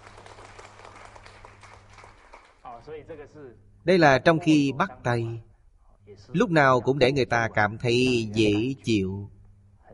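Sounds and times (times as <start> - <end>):
audience applause: 0.0 - 2.6
speech: 2.8 - 5.5, 6.1 - 9.4.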